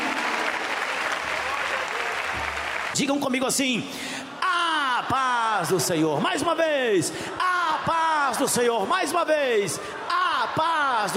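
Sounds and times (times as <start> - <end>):
Pentecostal church congregation applauding: 0.0 - 3.4
speech: 3.0 - 4.2, 5.1 - 10.0, 10.6 - 11.1.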